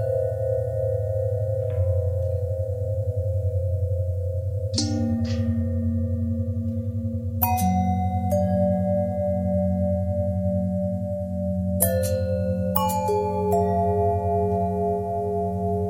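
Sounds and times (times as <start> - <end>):
long bell with twisting pitch bend: 0.0 - 15.8.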